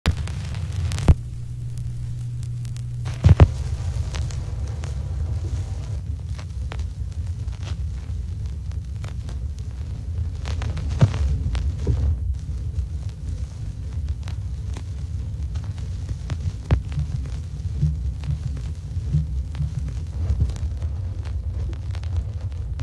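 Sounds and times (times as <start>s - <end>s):
vinyl crackles: 0.0s - 22.8s.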